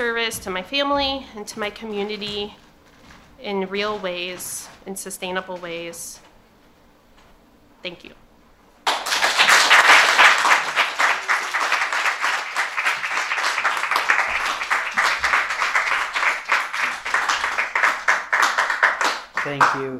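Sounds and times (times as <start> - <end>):
speech: 0.2 - 2.7, 3.4 - 6.2, 7.8 - 8.2, 19.4 - 19.9
audience applause: 8.8 - 19.9.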